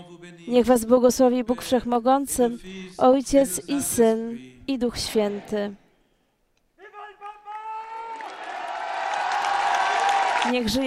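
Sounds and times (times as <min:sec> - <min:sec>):
speech: 0:00.2 - 0:05.8, 0:10.5 - 0:10.8
crowd applause: 0:06.9 - 0:10.8.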